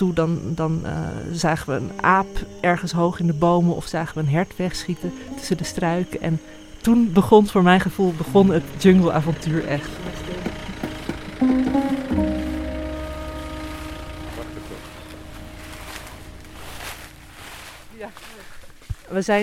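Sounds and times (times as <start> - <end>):
speech: 0.0 - 10.5, 19.2 - 19.4
footsteps on large fallen leaves: 7.9 - 19.4.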